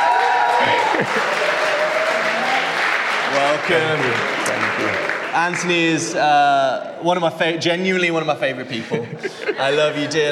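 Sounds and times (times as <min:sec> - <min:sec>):
church congregation applauding to welcome a speaker to the stage: 0:00.0 - 0:06.2
laughter: 0:00.6 - 0:01.8, 0:08.7 - 0:10.3
speech: 0:01.0 - 0:01.4, 0:03.3 - 0:10.3.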